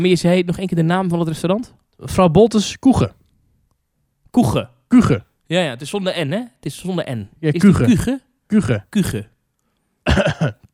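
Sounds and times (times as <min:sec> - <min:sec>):
speech: 0:00.0 - 0:03.2, 0:04.3 - 0:09.3, 0:10.1 - 0:10.6
person coughing: 0:10.0 - 0:10.7.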